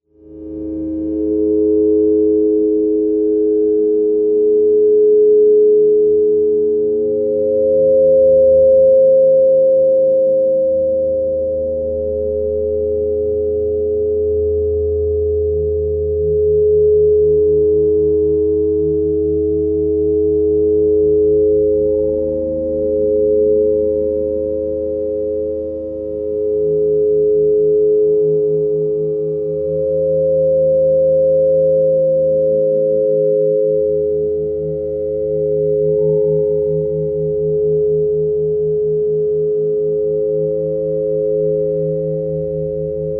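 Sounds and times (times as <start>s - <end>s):
drone: 0.1s - 43.1s.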